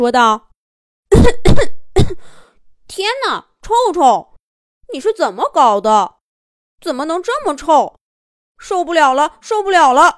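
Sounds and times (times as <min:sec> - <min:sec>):
speech: 0:00.0 - 0:00.5, 0:01.1 - 0:04.3, 0:04.9 - 0:06.2, 0:06.8 - 0:08.0, 0:08.6 - 0:10.1
person coughing: 0:01.1 - 0:02.3.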